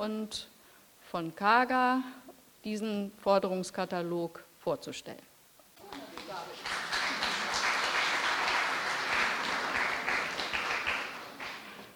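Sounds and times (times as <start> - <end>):
speech: 0.0 - 0.5, 1.1 - 5.3
audience applause: 5.9 - 11.9.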